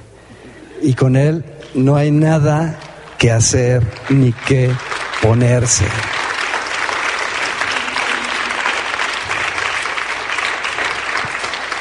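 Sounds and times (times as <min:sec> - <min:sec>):
speech: 0:00.8 - 0:06.1
audience applauding: 0:03.1 - 0:11.7.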